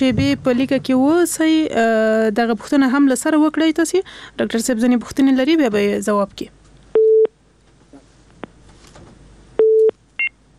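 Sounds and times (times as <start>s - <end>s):
speech: 0.0s - 6.6s
telephone busy tone after a call is cut off: 7.0s - 7.3s, 9.6s - 10.3s.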